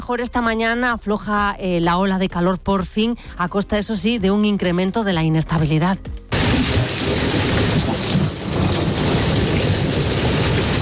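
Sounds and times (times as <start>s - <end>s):
speech: 0.1s - 6.2s
deep thunder rumbling: 6.3s - 10.8s
heavy rain in a thunderstorm: 6.3s - 10.8s.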